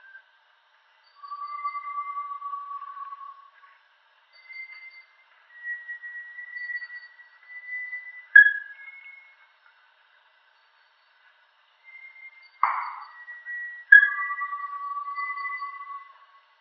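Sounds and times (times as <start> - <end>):
Bartlett's tinamou whistling: 1.2 - 3.5, 5.6 - 9.3, 11.9 - 16.2.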